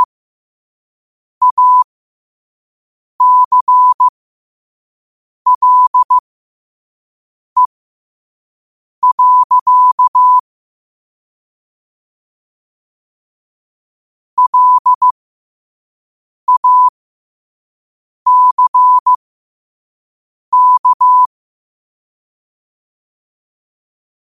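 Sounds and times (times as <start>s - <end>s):
morse code at 5 wpm: 1.4s - 1.8s, 3.2s - 4.1s, 5.5s - 6.2s, 9.0s - 10.4s, 14.4s - 15.1s, 16.5s - 16.9s, 18.3s - 19.2s, 20.6s - 21.3s.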